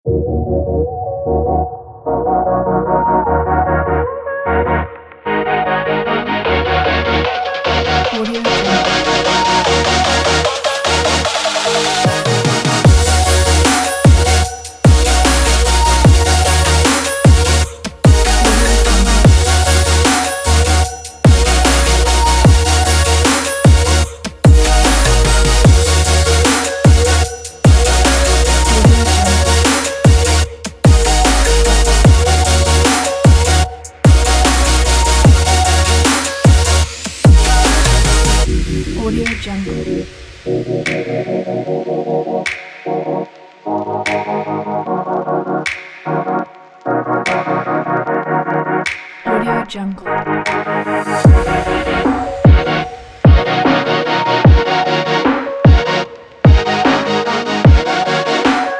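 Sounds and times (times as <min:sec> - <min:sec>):
future bass music: 0:00.1 - 0:58.7.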